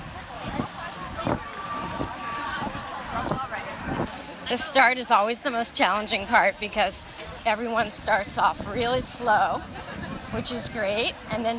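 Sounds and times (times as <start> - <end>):
running footsteps at the start of a 5K race in Philadelphia: 0.0 - 4.3
wind-like rush: 0.0 - 4.5, 6.1 - 11.5
speech: 4.5 - 11.5.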